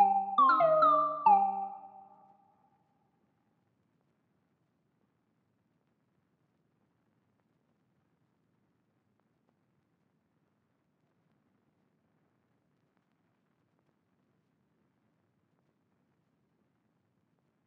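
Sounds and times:
trap lead melody loop in G minor: 0:00.0 - 0:02.0.

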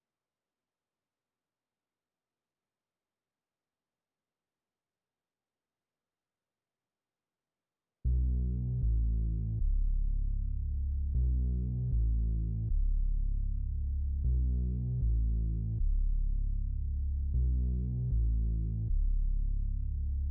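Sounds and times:
bass melody in C sharp minor: 0:08.1 - 0:20.2.

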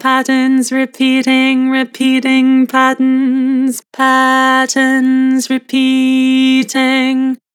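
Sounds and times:
person singing with vibrato: 0:00.0 - 0:07.5.

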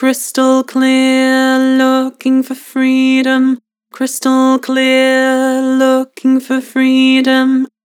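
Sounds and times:
person singing with vibrato: 0:00.0 - 0:07.7.

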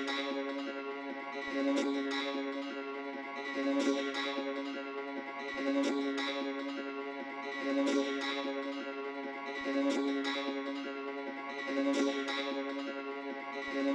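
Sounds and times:
dulcimer melody in C sharp minor trap loop at 118 BPM: 0:00.0 - 0:13.9.

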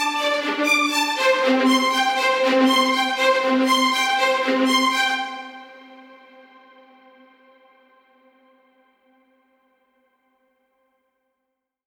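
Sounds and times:
viola ostinato: 0:00.0 - 0:06.1.

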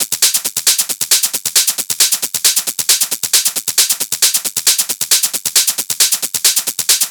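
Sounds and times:
techno hi-hat loop at 135 BPM: 0:00.0 - 0:07.0.

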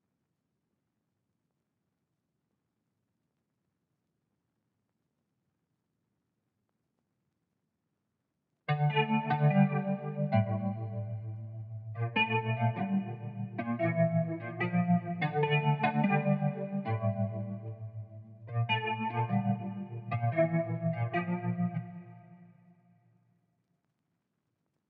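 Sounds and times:
guitar melody loop in D minor: 0:08.7 - 0:22.2.

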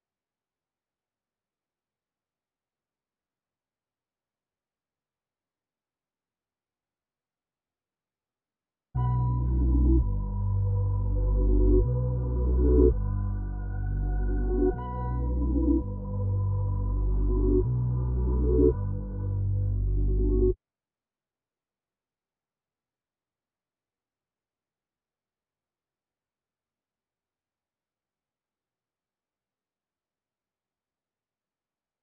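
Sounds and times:
reversed low melody loop: 0:09.0 - 0:20.6.

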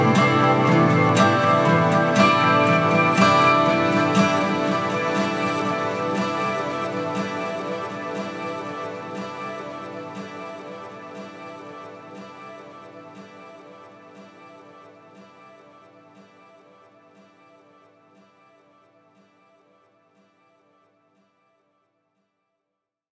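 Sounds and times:
guitar playing in A minor: 0:00.0 - 0:13.8.

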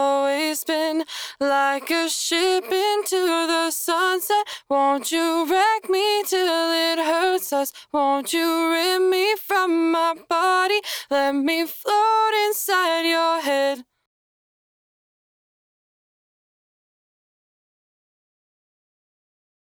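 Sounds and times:
dry a cappella main vocal at 150 BPM in C# minor: 0:00.0 - 0:13.9.

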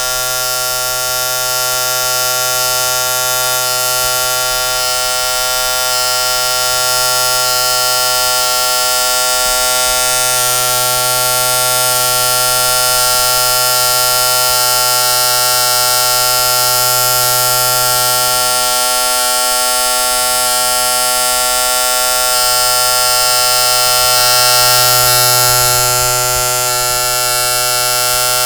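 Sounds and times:
electric razor buzzing: 0:00.0 - 0:28.4.

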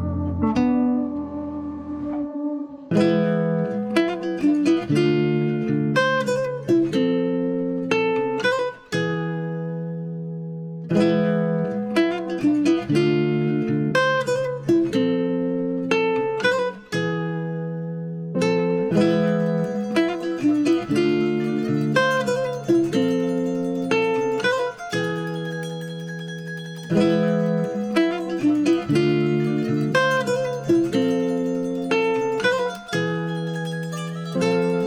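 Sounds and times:
Wild West guitar loop at 120 BPM in C major: 0:00.0 - 0:01.6, 0:02.9 - 0:34.8.

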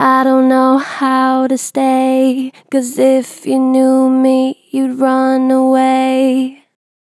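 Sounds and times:
Harmor synthesized vocals with gentle natural vibrato: 0:00.0 - 0:06.8.

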